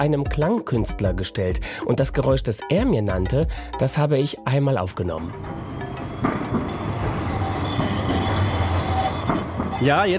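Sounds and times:
speech: 0:00.0 - 0:06.7, 0:09.8 - 0:10.1
old angular Tatra trams rumbling through Bratislava: 0:04.8 - 0:10.1
faint Tatra tram squeal: 0:06.0 - 0:10.1.

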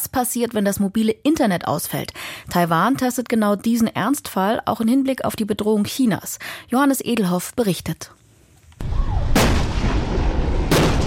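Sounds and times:
speech: 0:00.1 - 0:08.2
M60 tank cannon fire: 0:08.8 - 0:11.0.

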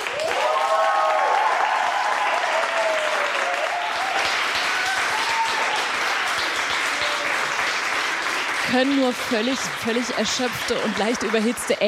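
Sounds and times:
applause from a live audience of parents: 0:00.0 - 0:11.8
speech: 0:08.7 - 0:11.8.

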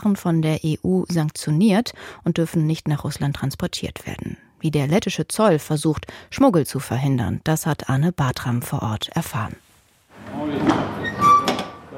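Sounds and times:
speech: 0:00.0 - 0:09.6, 0:10.3 - 0:11.3
truck driver opening the cargo hold door of a lorry: 0:10.2 - 0:11.9
thin squeal: 0:11.0 - 0:11.9.

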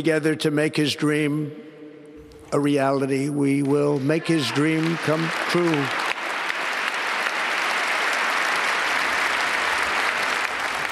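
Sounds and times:
speech: 0:00.0 - 0:01.6, 0:02.5 - 0:06.0
large crowd applause for a speech: 0:04.0 - 0:10.9.

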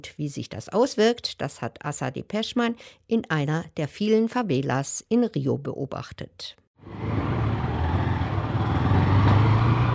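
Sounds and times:
speech: 0:00.0 - 0:07.2
motorcycle riding through city streets: 0:06.8 - 0:09.9.

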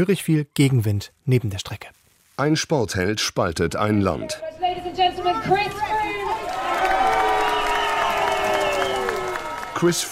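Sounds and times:
speech: 0:00.0 - 0:06.2, 0:09.8 - 0:10.0
scattered shouts and raised voices: 0:05.3 - 0:10.0
roadside crowd cheering and clapping at a cycling race: 0:05.5 - 0:10.0.

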